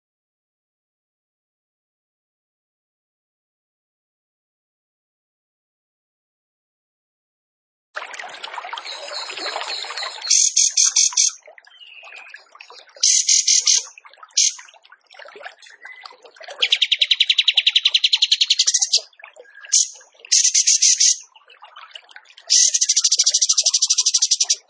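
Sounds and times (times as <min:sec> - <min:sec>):
zebra finch song: 0:08.9 - 0:14.7, 0:15.6 - 0:21.3, 0:22.4 - 0:24.6.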